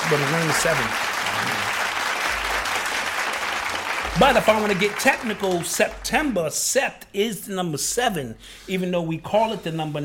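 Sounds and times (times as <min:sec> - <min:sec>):
applause: 0:00.0 - 0:06.0
speech: 0:00.1 - 0:01.5, 0:04.2 - 0:10.0.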